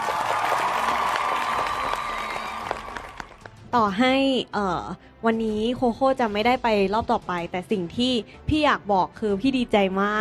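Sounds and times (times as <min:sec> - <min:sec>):
audience applause: 0:00.0 - 0:03.6
speech: 0:03.7 - 0:10.2.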